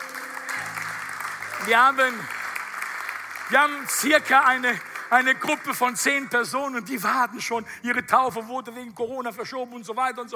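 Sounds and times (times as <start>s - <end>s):
audience applause: 0.0s - 6.4s
speech: 1.6s - 2.4s, 3.5s - 10.3s.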